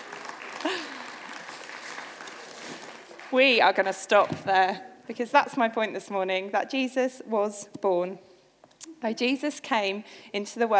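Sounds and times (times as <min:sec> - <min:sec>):
crowd round of applause: 0:00.0 - 0:03.4
speech: 0:03.3 - 0:08.3, 0:08.9 - 0:10.7.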